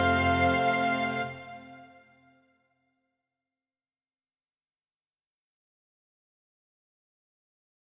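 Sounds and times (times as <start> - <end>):
instrumental and strings music mix: 0.0 - 2.3.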